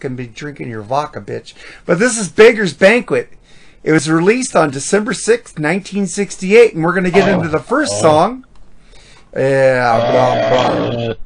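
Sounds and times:
speech: 0.0s - 8.5s, 9.3s - 11.2s
burp: 7.1s - 8.2s.

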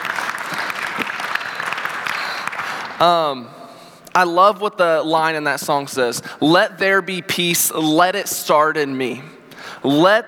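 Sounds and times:
crowd applause: 0.0s - 3.0s
speech: 3.0s - 3.6s, 4.2s - 10.2s
man speaking loudly: 3.0s - 10.2s.

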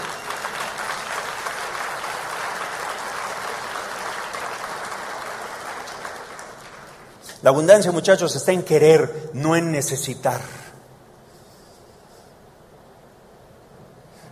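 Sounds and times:
audience applause: 0.0s - 7.2s
speech: 7.4s - 10.7s.

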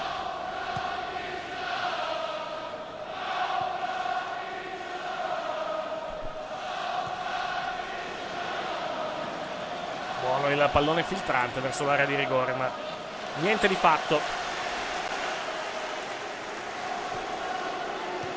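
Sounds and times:
Portuguese football crowd cheering in stadium: 0.0s - 18.3s
speech: 10.3s - 14.4s.

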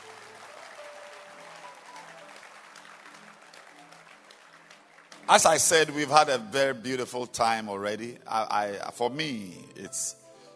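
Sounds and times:
audience clapping: 0.0s - 6.5s
speech: 5.3s - 10.2s.

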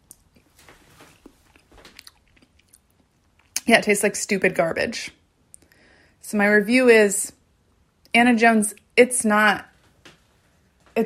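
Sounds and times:
chewing homemade chickpea flour and rice flour noodles: 1.1s - 3.6s
speech: 3.7s - 5.2s, 6.3s - 7.4s, 8.2s - 9.7s.

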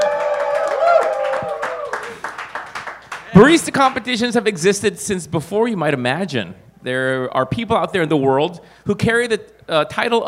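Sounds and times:
audience applause: 0.0s - 3.6s
speech: 3.4s - 10.2s.

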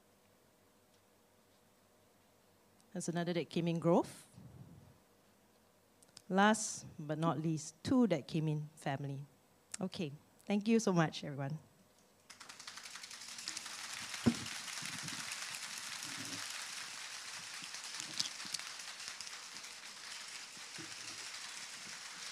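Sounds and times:
speech: 3.0s - 4.4s, 6.3s - 11.7s
audience clapping: 12.3s - 22.3s.

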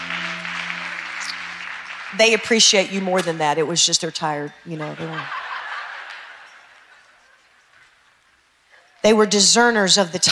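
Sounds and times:
audience hand clapping: 0.0s - 3.5s, 5.6s - 8.2s
speech: 2.1s - 5.4s, 9.0s - 10.3s
laughter: 4.7s - 8.0s.

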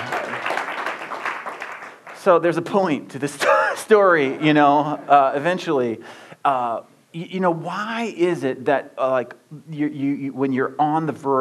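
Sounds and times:
audience clapping: 0.0s - 2.4s
speech: 2.2s - 11.3s.

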